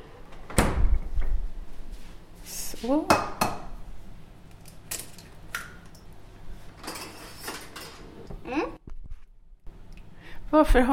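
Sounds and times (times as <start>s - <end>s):
refrigerator door opening: 0.4s - 1.2s
speech: 2.8s - 3.4s, 10.5s - 10.9s.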